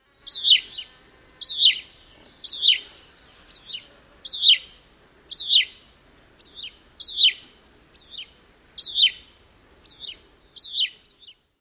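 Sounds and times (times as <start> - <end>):
bird song: 0.0 - 11.5.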